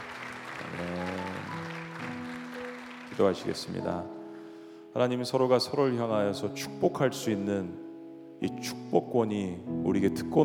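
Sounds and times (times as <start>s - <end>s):
audience applauding: 0.0s - 3.9s
speech: 3.2s - 4.2s, 5.0s - 7.8s, 8.4s - 10.4s.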